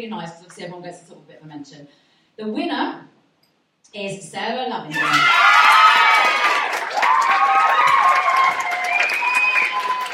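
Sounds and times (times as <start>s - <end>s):
speech: 0.0s - 3.2s, 3.8s - 7.0s
crowd cheering and applauding: 5.0s - 10.1s.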